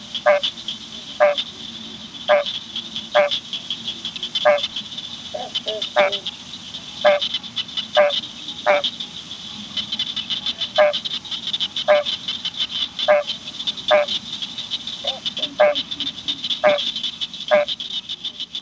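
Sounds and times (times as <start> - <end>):
tree frog chorus: 0.0 - 18.6.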